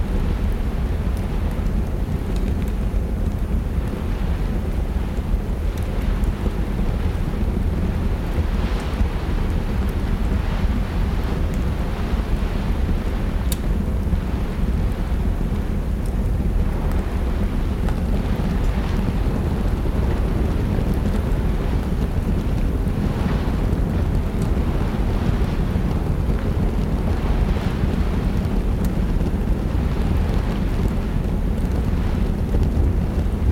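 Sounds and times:
fire crackling in a fireplace: 0.0 - 33.5
storm rain on windows: 0.0 - 33.5.

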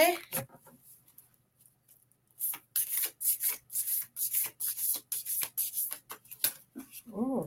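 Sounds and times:
tarot cards being shuffled and drawn: 2.4 - 6.7.

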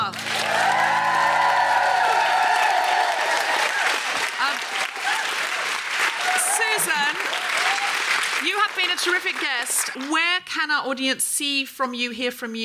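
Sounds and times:
audience applause and cheers: 0.0 - 10.1
speech: 9.2 - 12.6.

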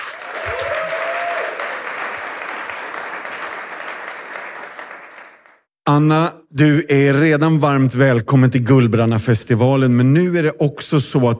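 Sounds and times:
audience applause: 0.0 - 5.7
faint whoop: 0.3 - 1.9
speech: 6.0 - 11.3.

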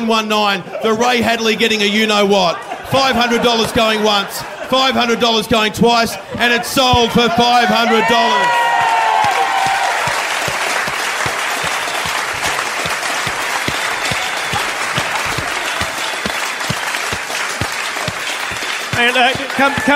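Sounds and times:
speech: 0.0 - 8.6, 19.0 - 19.9
laughter: 0.4 - 19.9
audience applause: 6.8 - 19.9.

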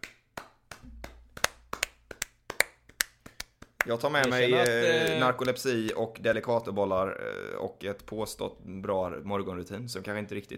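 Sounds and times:
sparse hand clapping: 0.0 - 6.0
speech: 3.9 - 10.5.

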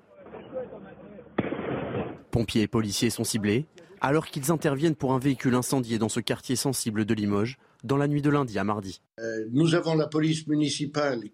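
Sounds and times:
firework mortar bang: 1.4 - 2.3
speech: 2.3 - 11.3.

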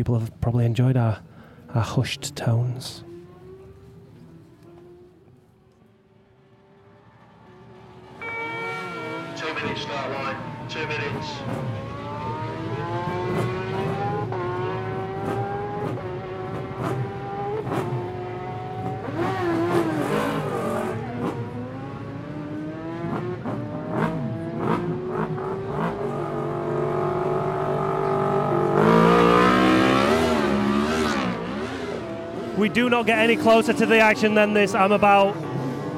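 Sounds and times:
speech: 0.0 - 3.1, 32.8 - 35.5
superbike engines revving and racing off: 1.8 - 5.3, 6.0 - 35.9.

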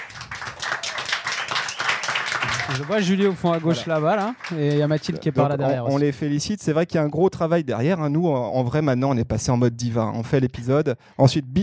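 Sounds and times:
crowd applauding: 0.0 - 6.0
laughter: 2.4 - 6.0
speech: 2.7 - 11.6.

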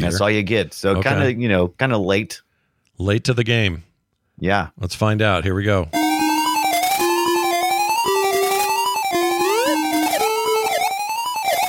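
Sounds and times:
speech: 0.0 - 6.0
Sega Master System video game music: 6.0 - 11.6.

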